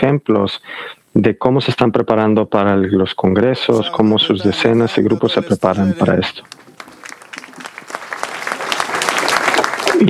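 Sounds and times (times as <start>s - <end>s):
speech: 0.0s - 6.6s
audience applause: 6.1s - 10.0s.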